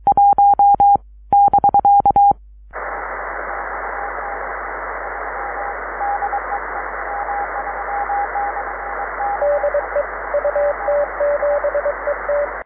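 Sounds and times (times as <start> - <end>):
CW Morse code beeps: 0.0 - 2.4, 6.0 - 12.6.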